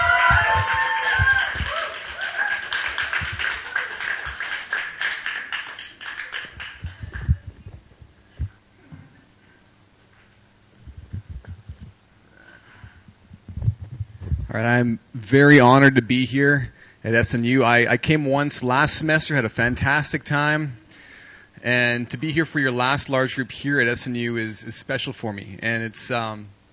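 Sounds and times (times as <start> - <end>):
cheers: 0.0 - 7.1
audience applause: 0.0 - 7.6
light shuffling and tapping: 6.7 - 8.6, 10.1 - 12.0
speech: 14.6 - 20.8, 21.6 - 26.6.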